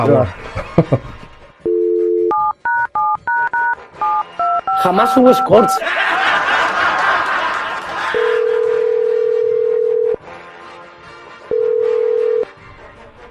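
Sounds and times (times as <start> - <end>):
speech: 0.0 - 1.1, 4.8 - 6.2
laughter: 0.0 - 1.6, 3.8 - 9.3
telephone line tone: 1.7 - 5.7, 8.1 - 10.2, 11.5 - 12.5.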